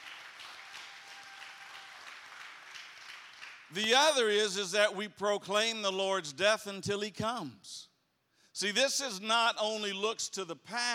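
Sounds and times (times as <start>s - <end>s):
audience clapping hands in praise: 0.0s - 4.0s
speech: 3.7s - 7.9s, 8.6s - 10.9s.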